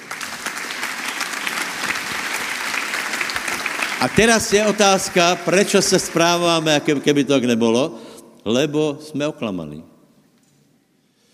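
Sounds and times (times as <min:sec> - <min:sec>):
audience applauding: 0:00.0 - 0:07.2
speech: 0:04.0 - 0:09.9.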